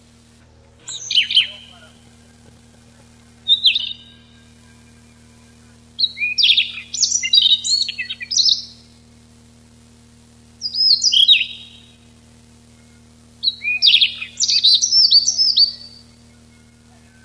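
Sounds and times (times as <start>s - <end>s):
faint low hum: 0.0s - 17.2s
Siberian rubythroat warbled song: 0.7s - 8.9s, 10.6s - 12.0s, 12.7s - 17.2s.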